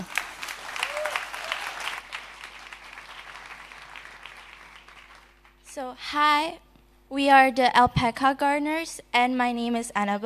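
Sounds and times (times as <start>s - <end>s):
audience applause: 0.0s - 5.6s
speech: 5.8s - 10.2s.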